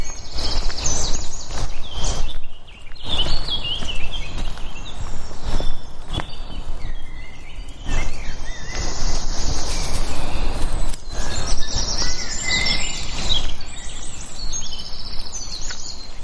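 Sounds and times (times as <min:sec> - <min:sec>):
birds chirping and calling in the woods: 0:00.0 - 0:16.2.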